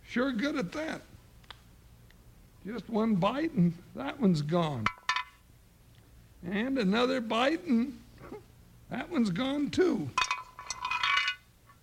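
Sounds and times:
speech: 0:00.2 - 0:01.1, 0:02.6 - 0:05.0, 0:06.4 - 0:10.2
bone clinking in a metal frying pan: 0:04.8 - 0:05.4, 0:10.2 - 0:11.4.

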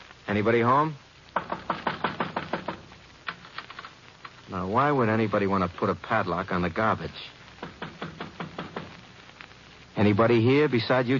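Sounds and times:
speech: 0:00.3 - 0:01.0, 0:04.5 - 0:07.4, 0:10.0 - 0:11.1
knocking on a wooden shed door: 0:01.4 - 0:02.9, 0:07.6 - 0:09.0.

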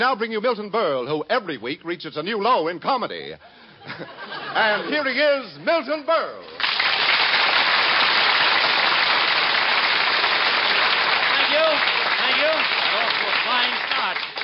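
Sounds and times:
speech: 0:00.0 - 0:06.8
laughter: 0:03.4 - 0:05.4
studio audience applause: 0:06.6 - 0:14.4.

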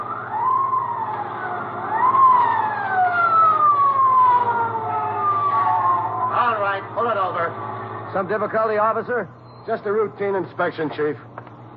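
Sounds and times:
motorcycle police siren: 0:00.0 - 0:08.8
steady low engine rumble: 0:00.0 - 0:11.7
speech: 0:08.2 - 0:11.3.

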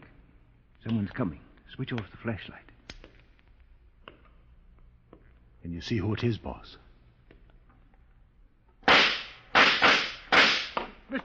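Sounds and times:
speech: 0:00.8 - 0:02.7, 0:05.6 - 0:06.8
gunshots fired at characters in a radio drama: 0:08.9 - 0:10.8.

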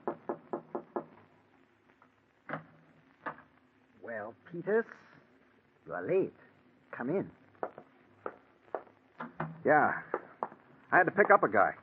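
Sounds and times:
knocking on a door: 0:00.0 - 0:01.2, 0:07.6 - 0:10.6
speech: 0:04.1 - 0:05.1, 0:05.9 - 0:07.4, 0:09.6 - 0:10.1, 0:10.9 - 0:11.8.

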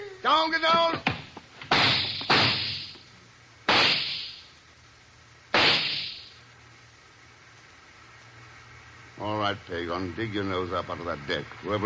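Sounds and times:
speech: 0:00.2 - 0:01.1, 0:09.2 - 0:11.8
gunshots: 0:01.7 - 0:02.9, 0:03.7 - 0:04.4, 0:05.5 - 0:06.3.

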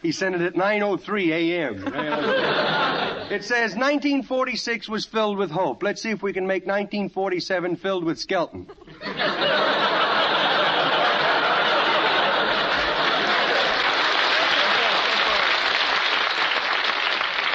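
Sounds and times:
speech: 0:00.0 - 0:09.9
laughter: 0:01.7 - 0:03.8, 0:08.6 - 0:15.9
audience applause: 0:09.8 - 0:17.5.

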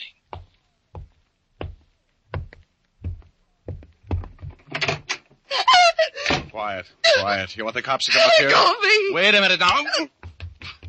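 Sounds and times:
heavy thuds as door opens: 0:00.3 - 0:04.9
door rattling and scraping: 0:04.0 - 0:05.2
speech: 0:06.6 - 0:10.2.

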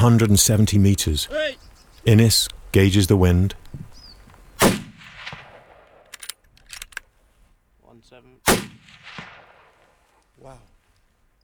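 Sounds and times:
speech: 0:00.0 - 0:03.8
rifle gunshot: 0:04.6 - 0:06.0, 0:08.5 - 0:09.9.

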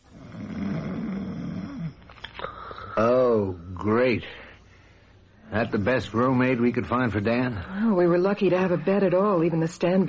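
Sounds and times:
man snoring loudly: 0:00.0 - 0:02.0
faint breathing: 0:02.2 - 0:03.0, 0:03.6 - 0:05.5
speech: 0:03.0 - 0:04.4, 0:05.5 - 0:10.0.

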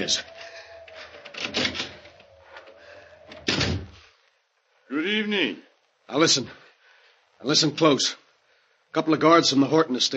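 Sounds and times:
speech: 0:00.0 - 0:00.3, 0:05.0 - 0:06.6, 0:07.4 - 0:08.2, 0:08.9 - 0:10.1
wooden door clunk as it swings open: 0:03.3 - 0:04.0.

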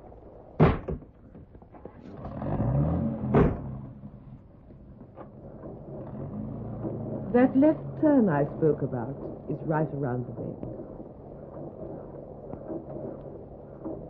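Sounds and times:
low drone: 0:01.8 - 0:14.0
car engine starting and driving off: 0:01.9 - 0:09.6
car door slamming: 0:03.2 - 0:03.9
speech: 0:07.4 - 0:10.9.

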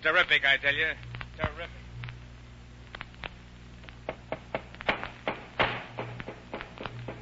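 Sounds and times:
speech: 0:00.0 - 0:01.8
low steady hum: 0:00.0 - 0:07.2
hammer pounding on a wooden crate to shut it: 0:04.1 - 0:07.2.

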